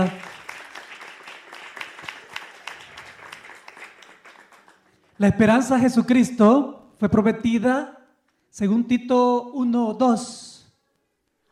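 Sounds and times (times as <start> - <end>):
audience applause: 0.0 - 5.2
speech: 5.2 - 10.5.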